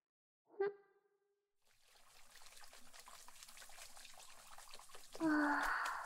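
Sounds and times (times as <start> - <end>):
water rinsing shampoo foam off hair: 1.6 - 6.0.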